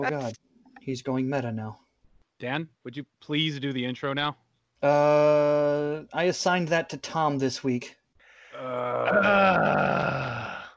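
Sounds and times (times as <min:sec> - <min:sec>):
speech: 0:00.0 - 0:01.8, 0:02.4 - 0:08.0, 0:08.6 - 0:10.3
man groaning: 0:08.6 - 0:10.7.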